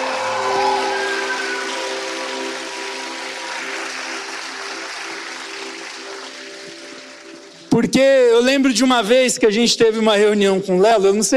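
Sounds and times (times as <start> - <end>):
applause: 0.0 - 7.8
speech: 7.8 - 11.3.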